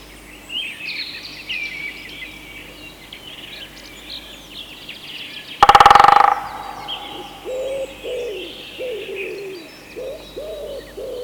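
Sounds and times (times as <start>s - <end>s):
common wood pigeon cooing: 5.6s - 11.2s.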